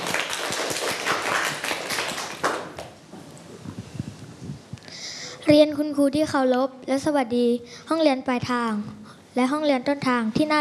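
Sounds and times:
audience applause for presenting group: 0:00.0 - 0:02.9
speech: 0:05.5 - 0:10.5.

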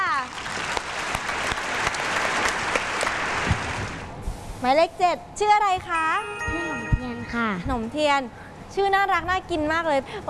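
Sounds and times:
audience applauding: 0:00.2 - 0:04.0
speech: 0:04.6 - 0:06.7, 0:07.3 - 0:10.2.

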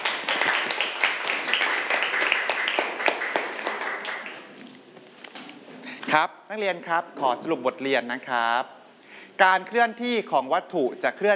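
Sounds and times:
students clapping hands: 0:00.0 - 0:04.8
speech: 0:06.1 - 0:11.3.

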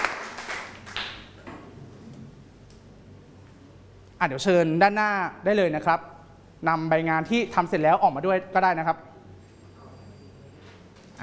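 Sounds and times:
students clapping: 0:00.0 - 0:01.4
speech: 0:04.2 - 0:09.1.

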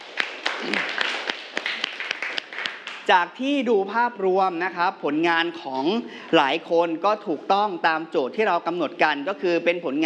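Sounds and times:
classroom clapping: 0:00.0 - 0:03.1
speech: 0:03.1 - 0:10.0.

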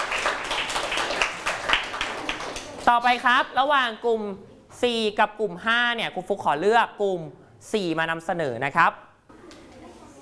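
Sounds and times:
classroom applause: 0:00.0 - 0:02.9
speech: 0:02.9 - 0:09.0.

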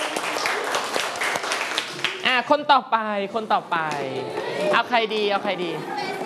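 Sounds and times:
children clapping for a classmate: 0:00.0 - 0:02.3
speech: 0:02.4 - 0:06.1.

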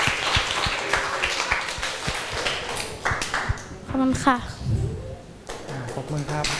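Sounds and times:
audience applause: 0:00.0 - 0:03.6
speech: 0:04.0 - 0:04.8, 0:06.0 - 0:06.5.

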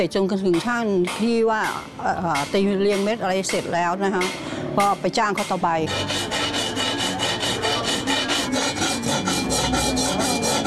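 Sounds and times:
speech: 0:00.0 - 0:06.3
hand filing with a rasp on a workpiece: 0:05.4 - 0:10.6.

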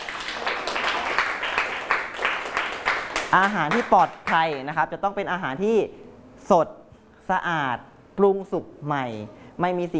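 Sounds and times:
group clapping: 0:00.0 - 0:04.8
speech: 0:03.3 - 0:09.9.

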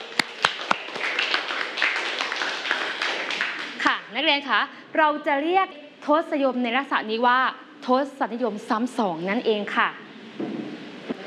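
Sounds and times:
classroom students clapping for a classmate: 0:00.0 - 0:03.9
speech: 0:04.1 - 0:10.0.

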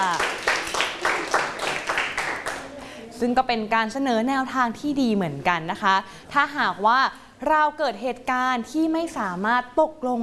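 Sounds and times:
group clapping for a classmate: 0:00.0 - 0:02.8
speech: 0:03.2 - 0:10.2.

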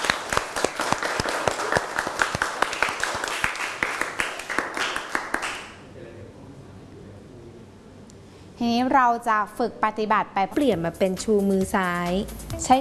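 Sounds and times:
crowd applauding: 0:00.0 - 0:05.8
speech: 0:08.6 - 0:12.7.

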